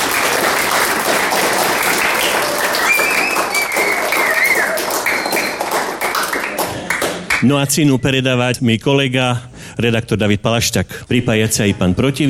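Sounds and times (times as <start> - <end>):
audience applause: 0.0 - 7.4
speech: 7.4 - 12.2.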